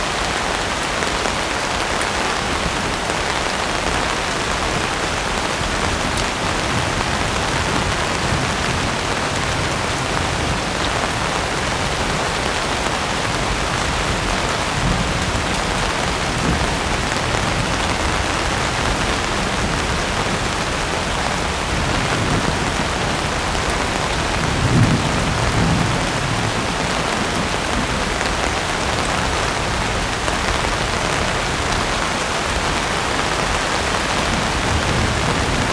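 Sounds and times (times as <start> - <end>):
constant rain storm: 0.0 - 35.7.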